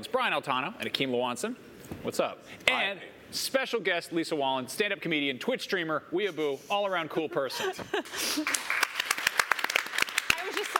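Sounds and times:
speech: 0.1 - 8.8
small audience clapping: 8.4 - 10.7.

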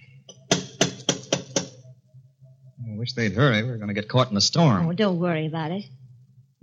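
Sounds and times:
faint low hum: 0.0 - 6.6
firm knocking on a door: 0.3 - 1.8
speech: 2.9 - 6.0.

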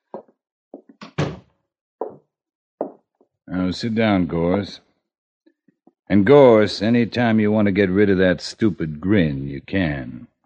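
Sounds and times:
door being closed: 1.0 - 2.2
speech: 3.5 - 4.8, 6.1 - 10.3.

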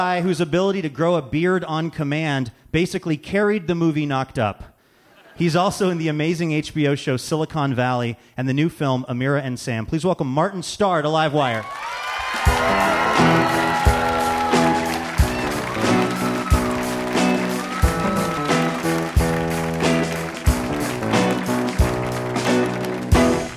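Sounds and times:
speech: 0.0 - 4.7, 5.4 - 12.0
live band playing intro music: 12.4 - 23.5.

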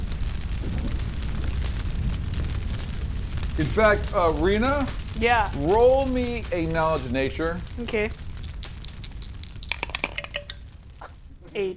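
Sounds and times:
forest fire crackling: 0.0 - 11.7
trees exploding in forest fire: 0.0 - 11.7
speech: 3.6 - 8.2, 11.6 - 11.7.

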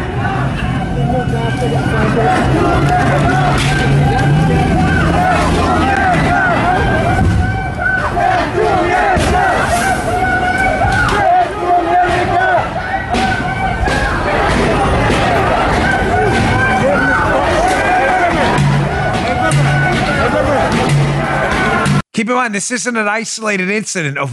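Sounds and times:
large crowd on a street chanting a slogan in unison: 0.0 - 22.0
speech: 22.2 - 24.3.

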